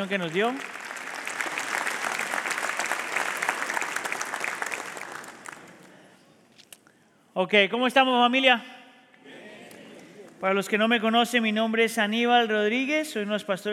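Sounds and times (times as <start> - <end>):
speech: 0.0 - 0.8, 7.4 - 8.7, 10.4 - 13.7
audience applause: 0.0 - 6.0.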